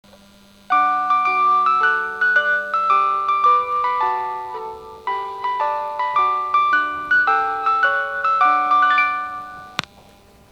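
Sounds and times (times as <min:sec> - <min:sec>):
chime: 0:00.7 - 0:09.8.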